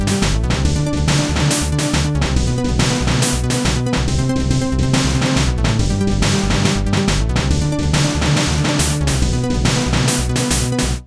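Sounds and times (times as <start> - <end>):
upward techno music: 0.0 - 11.0.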